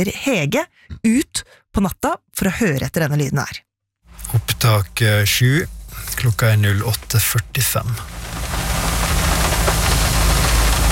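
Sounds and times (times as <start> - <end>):
speech: 0.0 - 3.7, 4.3 - 8.6
rain against car window: 4.2 - 10.9.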